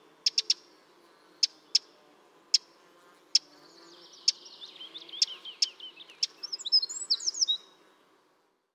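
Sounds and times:
Eurasian wren calls: 0.2s - 0.8s, 1.4s - 1.9s, 2.5s - 2.7s, 3.3s - 7.7s.

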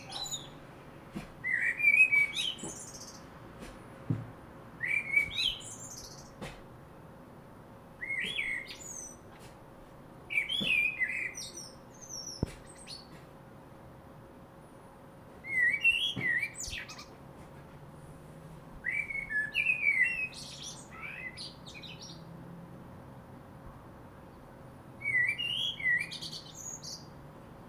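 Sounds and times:
Common blackbird singing: 0.0s - 0.6s, 1.4s - 3.3s, 4.8s - 6.4s, 8.0s - 9.3s, 10.3s - 13.2s, 15.4s - 17.2s, 18.8s - 22.3s, 25.0s - 27.1s.

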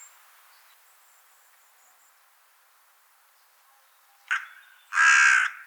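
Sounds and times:
carrion crow Corvus corone cawing: 4.3s - 5.6s.

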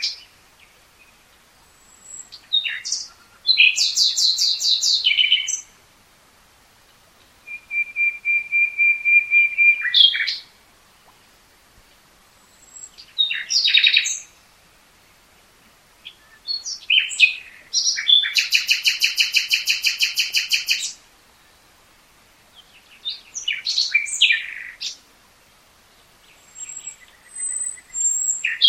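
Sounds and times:
common nightingale singing: 0.0s - 5.8s, 7.2s - 10.6s, 11.9s - 14.4s, 16.0s - 21.7s, 22.4s - 25.1s, 25.9s - 28.6s.

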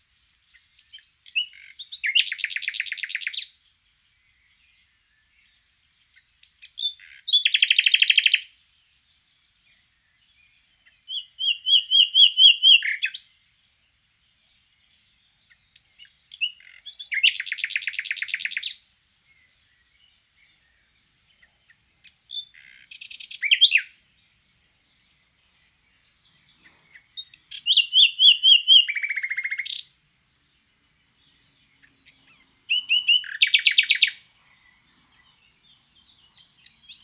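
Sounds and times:
common nightingale song: 0.0s - 37.0s.

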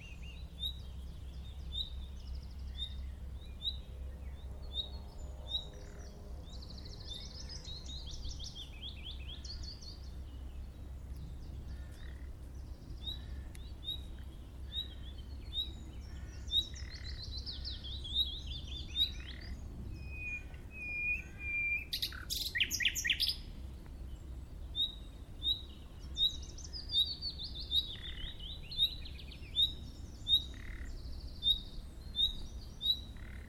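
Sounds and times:
low rumble: 0.0s - 33.4s
common nightingale whistling: 20.0s - 23.4s.

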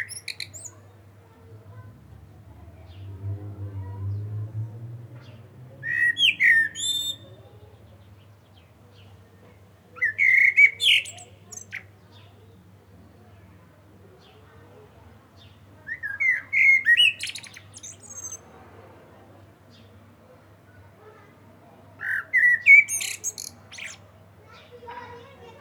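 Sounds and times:
common blackbird singing: 0.0s - 0.8s, 5.2s - 9.2s, 10.0s - 12.3s, 15.4s - 18.5s, 22.0s - 24.1s
low hum: 1.4s - 5.9s.

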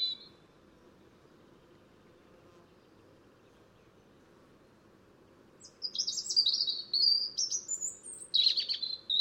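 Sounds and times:
European robin (Erithacus rubecula) song with high warbled phrases: 0.0s - 0.4s, 5.6s - 9.1s.

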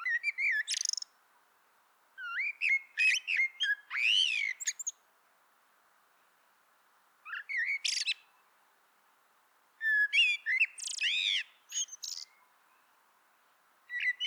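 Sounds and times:
Common blackbird song: 0.0s - 1.1s, 2.2s - 5.0s, 7.2s - 8.5s, 9.8s - 13.0s, 13.9s - 14.2s.

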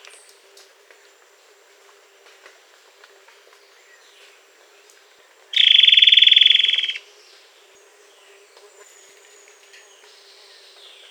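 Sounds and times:
bird buzzing pulsed trill: 5.6s - 7.0s.

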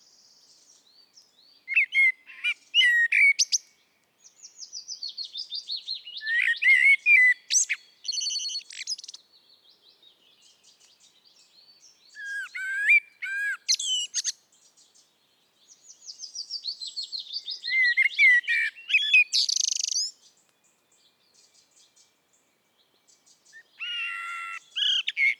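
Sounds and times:
Eurasian blackbird song: 1.7s - 3.7s, 4.3s - 9.2s, 10.3s - 15.0s, 15.7s - 20.2s, 23.0s - 25.3s.

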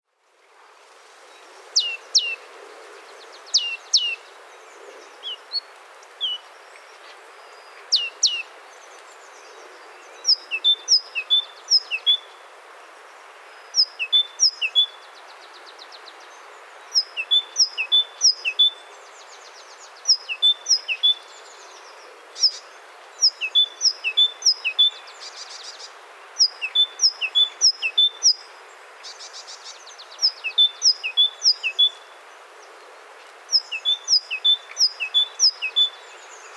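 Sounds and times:
faint hiss: 0.0s - 36.5s
great tit singing: 3.2s - 6.5s, 7.7s - 8.5s, 9.3s - 12.3s, 13.6s - 32.1s, 33.5s - 36.5s.

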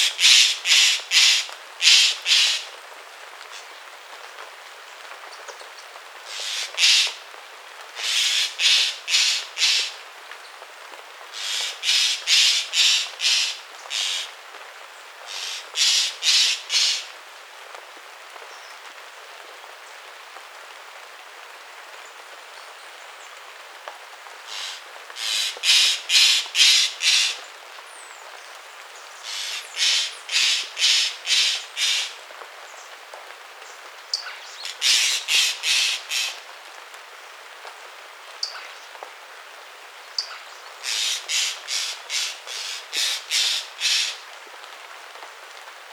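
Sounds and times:
bird rasping calls: 0.1s - 2.6s, 6.3s - 7.2s, 8.0s - 10.0s, 11.4s - 14.3s, 15.3s - 17.1s, 24.5s - 27.4s, 29.2s - 32.2s, 34.2s - 36.4s, 40.2s - 44.2s.

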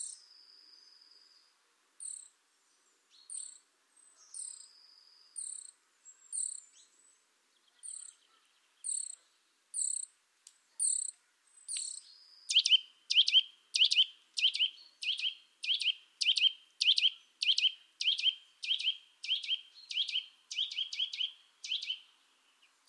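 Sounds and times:
Sitta europaea: 2.0s - 2.3s, 3.3s - 6.8s, 7.7s - 10.1s, 10.7s - 22.0s.

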